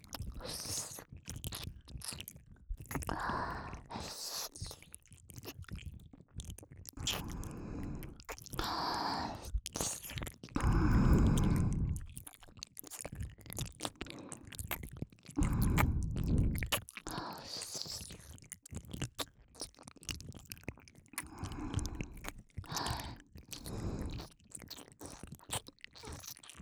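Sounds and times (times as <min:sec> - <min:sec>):
shallow ASMR ear licking loop in left ear for relaxation: 0:07.0 - 0:18.2, 0:21.2 - 0:26.6.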